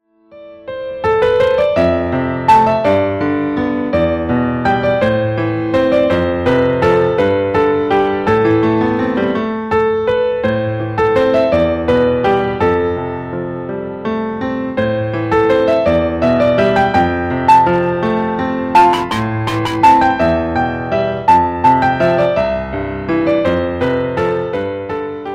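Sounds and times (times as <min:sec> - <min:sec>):
piano music: 0:00.1 - 0:25.3.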